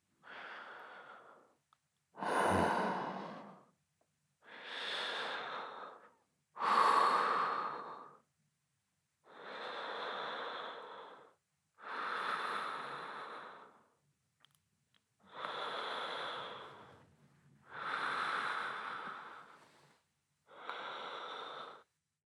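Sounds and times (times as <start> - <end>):
person breathing in sleep: 0.2 - 1.6, 2.2 - 3.7, 4.4 - 8.3, 9.2 - 14.0, 15.3 - 17.0, 17.6 - 21.9.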